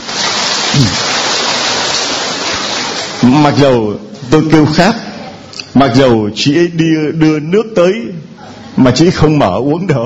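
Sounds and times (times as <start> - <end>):
audience applause: 0.0 - 3.5
speech: 0.8 - 1.1, 3.2 - 5.1, 5.7 - 10.0.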